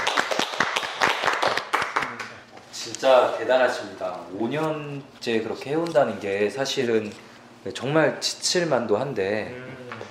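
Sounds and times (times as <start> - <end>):
small group hand clapping: 0.0 - 2.5
speech: 3.0 - 10.0.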